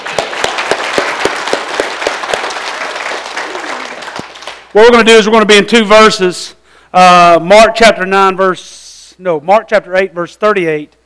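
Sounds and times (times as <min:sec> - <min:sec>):
audience applause: 0:00.0 - 0:04.7
speech: 0:04.7 - 0:11.0.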